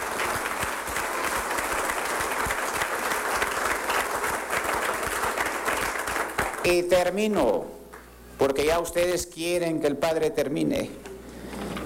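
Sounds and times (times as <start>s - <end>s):
audience applause: 0.0s - 6.8s
speech: 6.6s - 7.8s, 8.4s - 11.0s.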